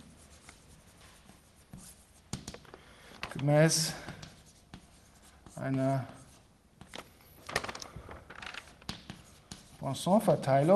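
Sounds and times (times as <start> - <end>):
handwriting of a single word during a maths lecture: 0.0 - 2.6, 4.2 - 6.9, 8.6 - 9.9
writing taps and scrapes: 0.4 - 3.4, 4.0 - 7.1, 8.6 - 9.8
speech: 3.4 - 4.1, 5.6 - 6.2, 9.8 - 10.7.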